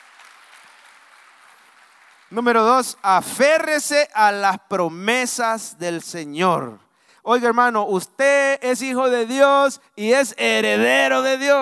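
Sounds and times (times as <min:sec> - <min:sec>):
audience applause: 0:00.0 - 0:02.4
speech: 0:02.3 - 0:11.6.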